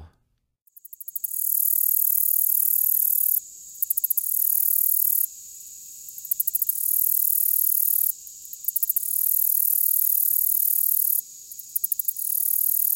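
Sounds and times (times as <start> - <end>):
Black-legged meadow katydid song: 0.7 - 12.9.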